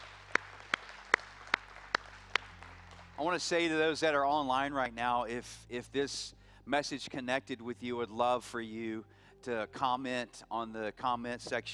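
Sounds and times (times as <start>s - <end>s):
audience clapping hands: 0.0s - 3.9s
speech: 3.2s - 11.7s.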